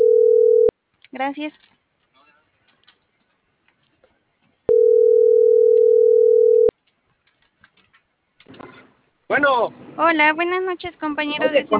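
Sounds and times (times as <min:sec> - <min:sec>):
telephone ringback tone of an unanswered call: 0:00.0 - 0:00.7, 0:04.7 - 0:06.7
speech: 0:01.2 - 0:01.8, 0:09.3 - 0:11.7.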